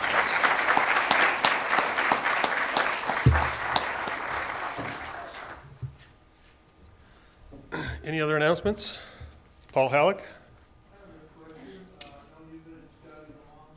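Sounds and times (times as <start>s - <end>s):
audience applause: 0.0s - 5.8s
speech: 8.1s - 9.1s, 9.8s - 10.4s.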